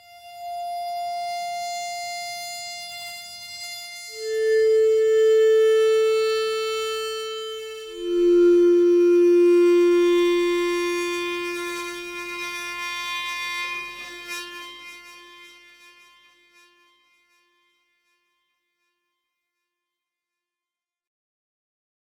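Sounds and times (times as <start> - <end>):
ambient music: 4.2 - 14.0.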